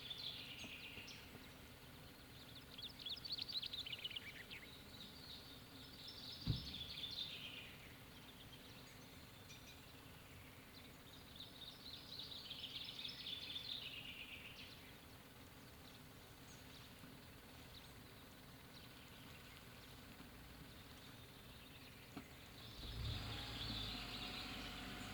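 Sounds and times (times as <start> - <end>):
birds on a lake bank: 0.0 - 25.1
car by a lake bank: 22.2 - 25.1.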